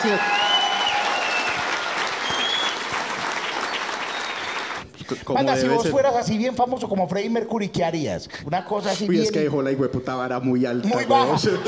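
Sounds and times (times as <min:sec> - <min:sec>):
speech: 0:00.0 - 0:00.4, 0:05.1 - 0:11.6
audience applause: 0:00.0 - 0:05.0
laughter: 0:10.8 - 0:11.6.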